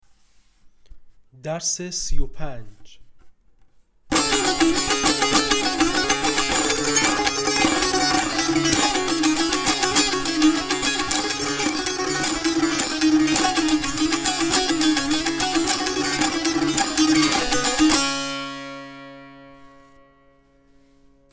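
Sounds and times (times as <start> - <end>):
tanbur practice: 4.1 - 20.9.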